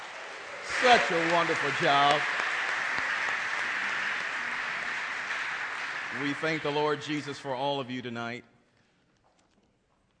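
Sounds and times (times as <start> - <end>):
audience applause for a choir at a church service: 0.0 - 7.9
speech: 0.8 - 2.4, 6.2 - 8.5.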